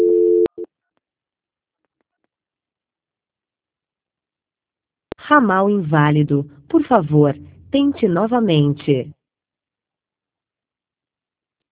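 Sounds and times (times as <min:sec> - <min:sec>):
electronic telephone tone during call transfer: 0:00.0 - 0:00.6
speech: 0:05.3 - 0:09.2.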